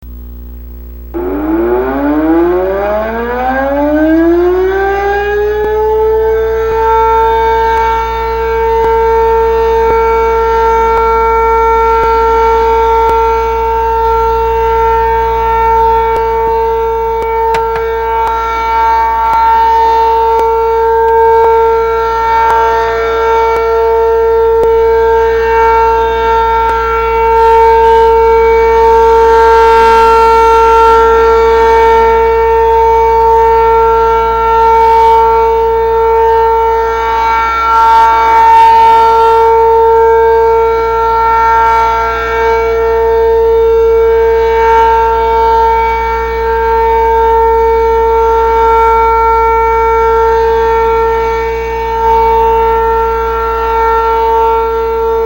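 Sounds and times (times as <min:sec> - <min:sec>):
sirens: 0:01.1 - 0:55.2.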